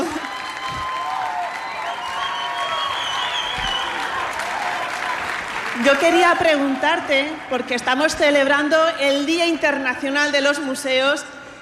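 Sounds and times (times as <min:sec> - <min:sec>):
applause: 0:00.0 - 0:08.1
speech: 0:05.8 - 0:11.4.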